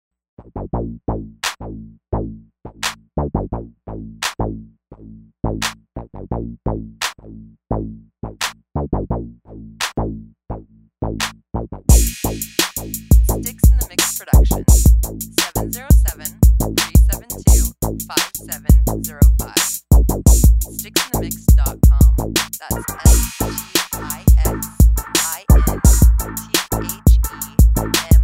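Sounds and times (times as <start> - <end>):
bass house music: 0.4 - 28.2.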